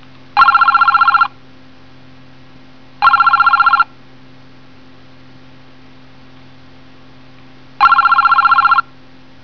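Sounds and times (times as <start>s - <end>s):
telephone: 0.4s - 1.3s, 3.0s - 3.9s, 7.8s - 8.8s.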